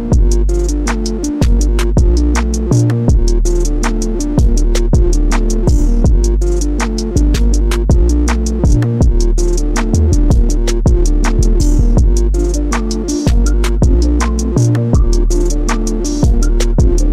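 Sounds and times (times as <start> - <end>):
beat: 0.1 - 17.1.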